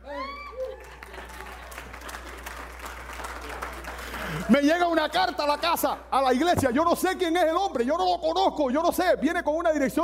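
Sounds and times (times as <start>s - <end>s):
audience applause: 0.0s - 5.7s
speech: 4.5s - 10.0s.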